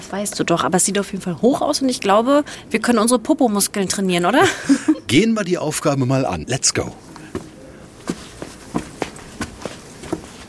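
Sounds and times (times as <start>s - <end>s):
speech: 0.1s - 7.4s
footsteps climbing a narrow spiral staircase: 7.3s - 10.4s.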